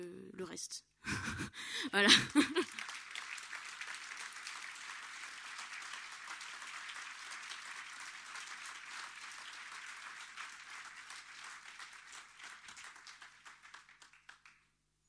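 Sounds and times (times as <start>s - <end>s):
speech: 0.4s - 2.8s
laughter: 1.1s - 2.9s
audience applause: 2.0s - 14.6s.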